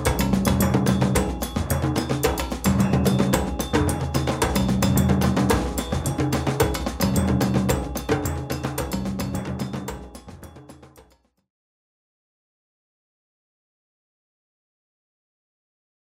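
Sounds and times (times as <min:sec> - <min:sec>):
groove music: 0:00.0 - 0:10.9.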